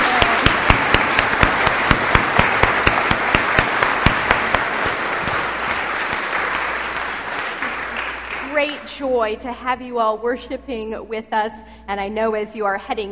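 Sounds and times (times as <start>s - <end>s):
church congregation applauding to welcome visiting worshippers: 0.0s - 8.9s
speech: 9.0s - 13.1s.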